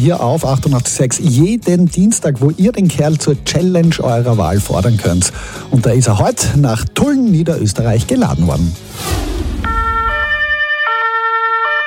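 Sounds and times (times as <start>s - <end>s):
speech: 0.0s - 9.3s
fire engine siren in hi-lo pattern: 9.6s - 11.8s.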